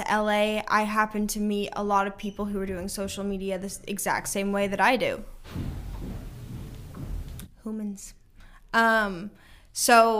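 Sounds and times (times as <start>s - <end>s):
speech: 0.1s - 5.8s, 7.7s - 10.1s
loud stomping footsteps outside: 5.4s - 7.5s.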